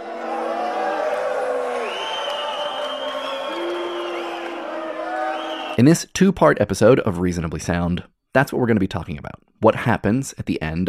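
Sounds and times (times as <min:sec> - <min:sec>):
large concert audience jeering, hissing and booing: 0:00.0 - 0:05.8
shrill whistles from a concert audience: 0:01.7 - 0:05.8
speech: 0:05.8 - 0:10.8.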